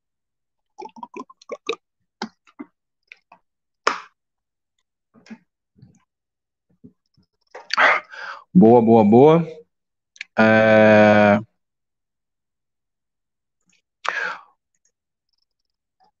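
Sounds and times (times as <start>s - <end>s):
person sipping water: 0.7s - 3.3s
breathy bursts: 7.8s - 8.5s
speech: 8.6s - 9.6s, 10.4s - 10.9s.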